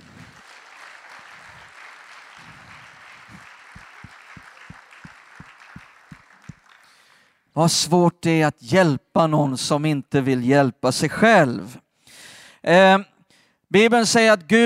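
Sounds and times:
audience applause: 0.0s - 7.3s
speech: 7.6s - 11.8s, 12.6s - 13.1s, 13.7s - 14.6s.

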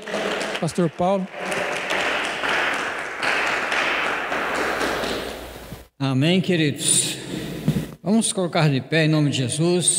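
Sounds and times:
audience applauding: 0.0s - 5.7s
speech: 0.6s - 1.4s, 6.0s - 7.0s, 8.1s - 9.9s.

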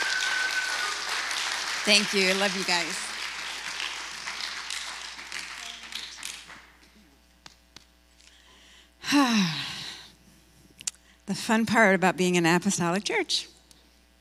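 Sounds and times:
audience applause: 0.0s - 6.8s
speech: 1.8s - 3.1s, 9.1s - 9.6s, 11.3s - 13.5s.

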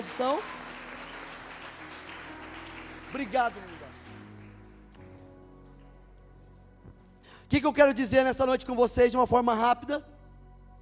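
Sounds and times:
audience applause: 0.0s - 4.8s
speech: 0.2s - 0.6s, 3.1s - 3.8s, 7.5s - 10.1s.

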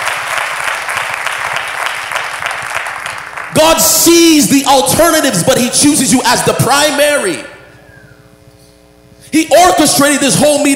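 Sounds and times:
audience clapping: 0.0s - 4.1s
speech: 3.6s - 7.5s, 9.3s - 10.7s.

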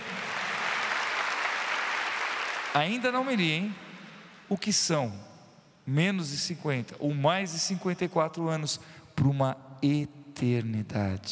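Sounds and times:
audience applause: 0.0s - 3.2s
speech: 2.8s - 3.8s, 4.5s - 5.3s, 5.9s - 11.2s.

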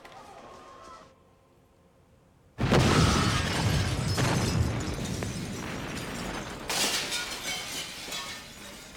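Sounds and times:
door exploding in film: 2.6s - 7.2s.

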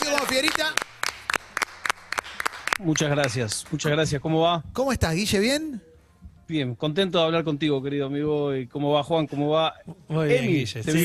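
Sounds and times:
applause: 0.0s - 4.0s
speech: 2.8s - 5.9s, 6.5s - 11.0s.

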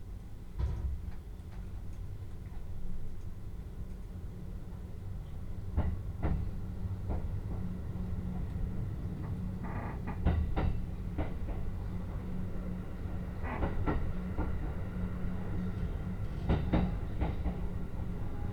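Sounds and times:
Utsunomiya Line train rumble and hum: 0.0s - 18.5s.

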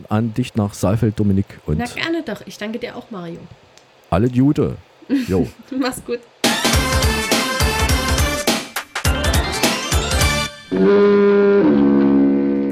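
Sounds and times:
speech: 0.0s - 7.4s, 10.7s - 11.7s
laughter: 5.1s - 5.6s
busy rhythmic music-like sound: 6.4s - 10.9s.

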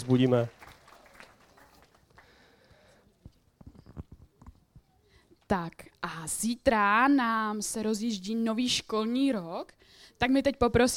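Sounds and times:
speech: 0.0s - 0.6s, 5.5s - 10.9s
soft applause from audience: 0.0s - 3.1s.

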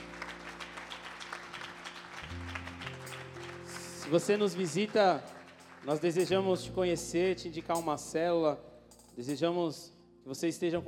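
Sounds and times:
audience applauding: 0.0s - 6.6s
speech: 4.1s - 10.8s.

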